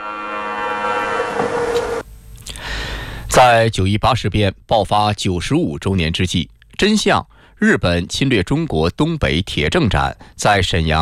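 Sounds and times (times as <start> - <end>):
air raid siren wailing: 0.0 - 2.0
speech: 3.4 - 11.0.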